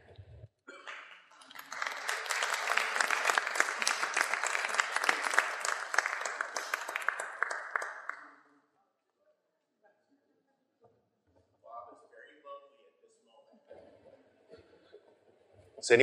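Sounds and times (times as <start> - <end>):
audience applause: 0.7 - 8.4.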